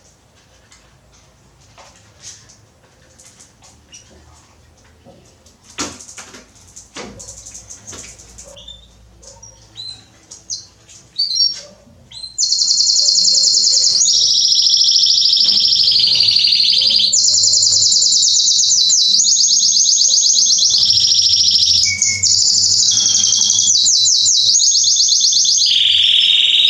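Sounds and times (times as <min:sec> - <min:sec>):
canary singing trills: 0:07.2 - 0:26.6.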